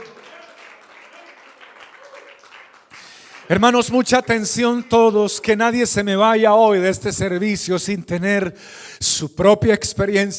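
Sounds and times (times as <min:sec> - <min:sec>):
audience applauding: 0:00.0 - 0:05.3
speech: 0:03.5 - 0:10.3.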